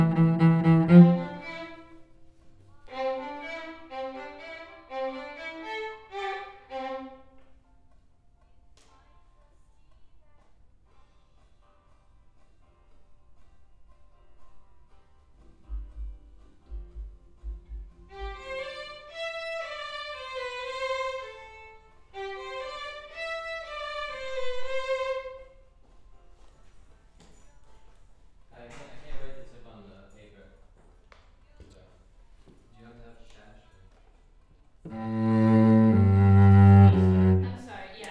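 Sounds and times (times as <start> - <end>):
cello: 0.0 - 2.2, 2.8 - 7.5, 18.1 - 25.5, 34.9 - 38.1.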